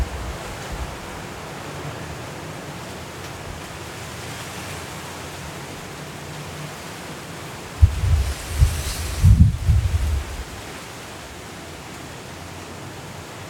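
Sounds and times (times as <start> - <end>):
Hurricane Kay winds roaring in Los Cabos: 0.0 - 4.2, 4.8 - 11.5
louder low thumps from wind gust: 7.8 - 10.5
low rumble: 7.8 - 10.5.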